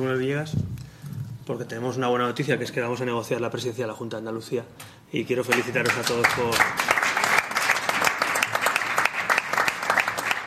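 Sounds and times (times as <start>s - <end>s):
speech: 0.0s - 0.8s, 1.5s - 7.0s
applause from party deputies: 5.4s - 10.4s.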